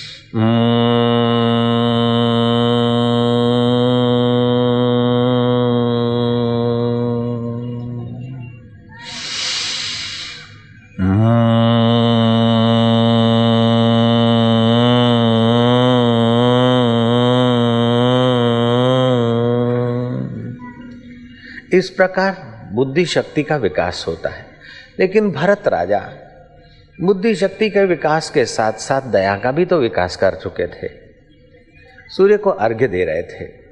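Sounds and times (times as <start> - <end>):
person humming a chant through the nose: 0.0 - 20.8
speech: 0.3 - 0.7, 21.8 - 26.2, 27.0 - 31.0, 32.1 - 33.6
breath drawn in: 9.0 - 10.6.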